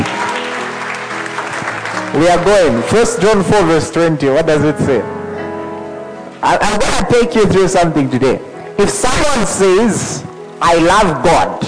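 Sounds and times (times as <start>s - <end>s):
crowd clapping: 0.0s - 3.3s
speech: 2.2s - 5.2s, 6.5s - 11.6s.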